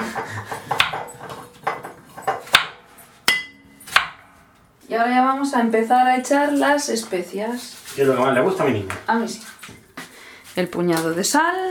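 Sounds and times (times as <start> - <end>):
knife chopping an onion on a wooden board: 0.4 - 4.4
speech: 5.0 - 9.5, 10.6 - 11.6.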